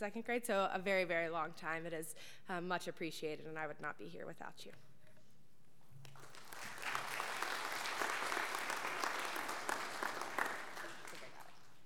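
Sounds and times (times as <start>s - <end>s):
speech: 0.0s - 4.9s
audience applause: 6.1s - 11.8s.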